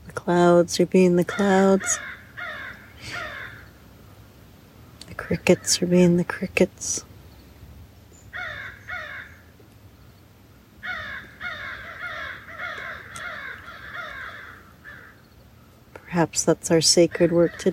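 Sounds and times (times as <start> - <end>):
speech: 0.3 - 2.2, 5.3 - 7.1, 16.2 - 17.7
crows cawing: 1.3 - 3.7, 8.3 - 9.5, 10.8 - 15.2.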